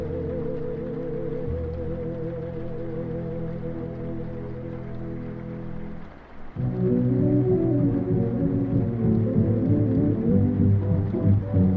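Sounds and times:
muffled oldies music from another room: 0.0s - 11.7s.

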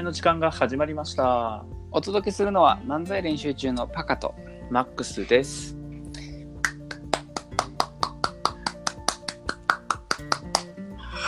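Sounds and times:
speech: 0.0s - 5.8s
applause after a title call: 6.7s - 10.8s.

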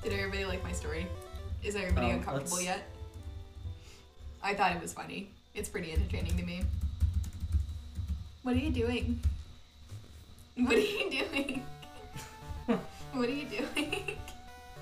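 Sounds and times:
speech: 0.0s - 3.0s, 4.4s - 6.8s, 8.4s - 9.4s, 10.6s - 14.2s
typing on a keyboard: 5.8s - 8.2s.

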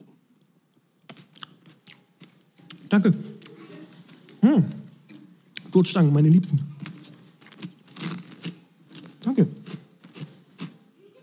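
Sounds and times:
chewing and biting grapes at a table: 0.4s - 4.4s, 6.8s - 10.9s
speech: 2.9s - 3.4s, 4.4s - 4.8s, 5.8s - 6.7s, 9.4s - 9.6s.

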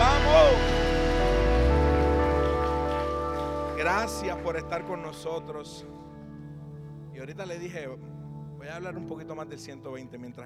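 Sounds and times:
audience applauding: 0.0s - 5.2s
sustained keyboard chords: 0.0s - 10.4s
speech: 3.9s - 6.1s, 7.2s - 10.4s.

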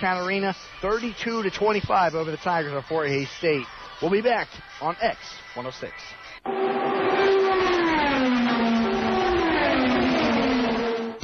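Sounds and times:
speech: 0.0s - 7.2s
race car engine revving: 6.5s - 11.2s.

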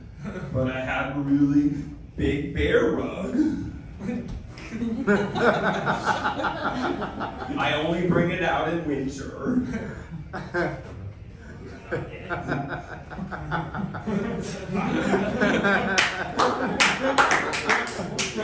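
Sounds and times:
speech: 0.5s - 10.9s, 11.9s - 18.4s
audience laughing and chuckling: 4.6s - 8.0s, 9.6s - 18.4s
audience applause: 15.9s - 18.4s.

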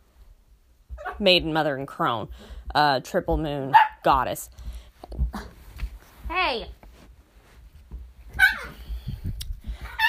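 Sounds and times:
speech: 1.2s - 5.5s, 6.4s - 6.8s
dogs playing with each other: 2.3s - 10.0s.

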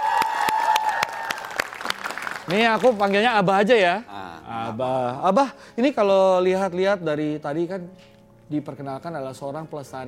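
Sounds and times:
audience applause: 0.0s - 3.2s
speech: 2.5s - 4.1s, 4.7s - 10.0s.

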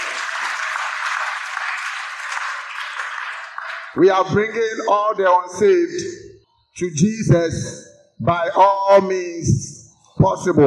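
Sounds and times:
audience clapping: 0.0s - 4.6s
speech: 4.0s - 6.2s, 6.8s - 10.6s.

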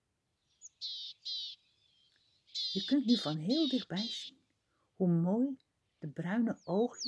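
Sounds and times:
sparrows chirping: 0.4s - 4.4s, 5.8s - 7.0s
speech: 2.8s - 4.4s, 5.0s - 7.0s.

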